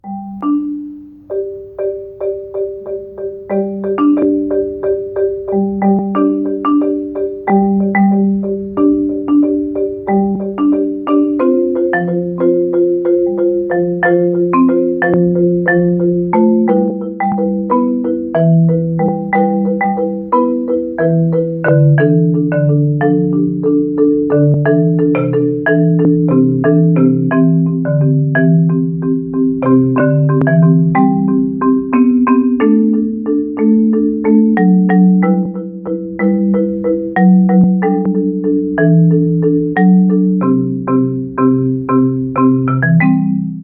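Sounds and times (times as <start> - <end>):
marimba: 0.0 - 43.6.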